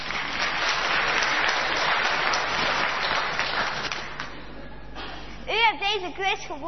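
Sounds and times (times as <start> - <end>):
audience applause: 0.0 - 4.3
speech: 5.9 - 6.6.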